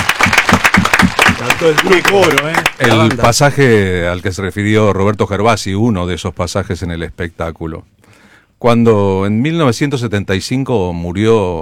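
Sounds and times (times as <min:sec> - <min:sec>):
audience at a stage show applauding a singer: 0:00.0 - 0:03.5
speech: 0:01.4 - 0:08.0, 0:08.6 - 0:11.6.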